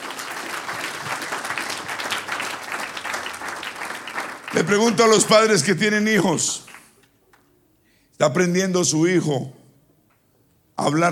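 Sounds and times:
audience applause: 0.0 - 7.0
speech: 4.5 - 6.6, 8.2 - 9.6, 10.8 - 11.0.

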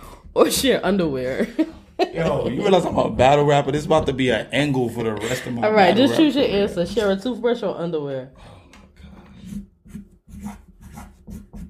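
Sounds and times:
speech: 0.4 - 8.6
laughter: 1.4 - 6.8
marker scratching across paper: 9.0 - 11.6.

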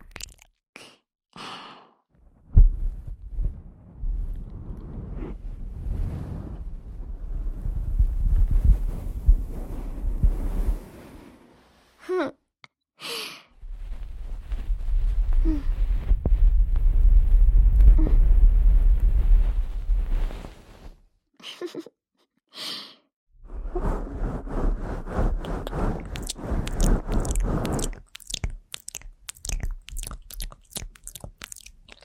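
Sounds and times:
soft rustling: 2.6 - 11.9, 13.6 - 21.0, 23.6 - 32.0
long airy exhales: 23.6 - 28.1.

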